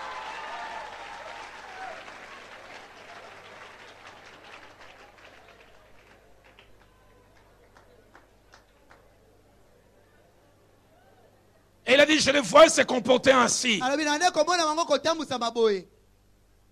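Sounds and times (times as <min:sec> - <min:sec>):
French-speaking audience applauding an interpreter: 0:00.0 - 0:09.0
speech: 0:12.0 - 0:15.9.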